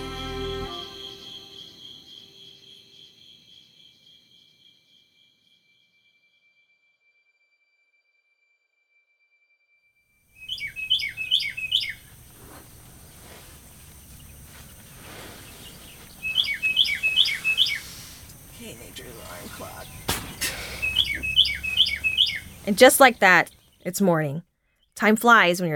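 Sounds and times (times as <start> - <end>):
birds chirping: 10.4 - 25.5
soft low ambient hum: 10.8 - 24.2
speech: 22.7 - 25.7.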